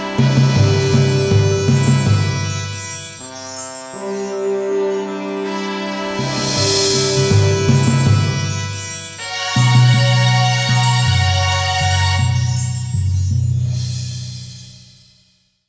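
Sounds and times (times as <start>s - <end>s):
stage clear jingle: 0.2s - 14.1s.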